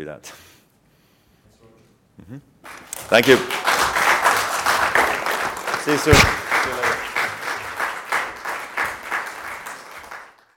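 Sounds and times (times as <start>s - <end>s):
speech: 0.0s - 0.5s, 2.2s - 2.5s, 3.1s - 3.6s, 5.8s - 6.9s
staff applauding: 2.7s - 10.5s.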